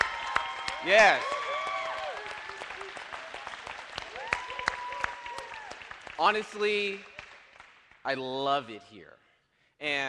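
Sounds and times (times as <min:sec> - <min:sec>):
audience applause: 0:00.0 - 0:08.0
speech: 0:00.8 - 0:01.4, 0:06.2 - 0:07.1, 0:08.0 - 0:09.2, 0:09.8 - 0:10.0.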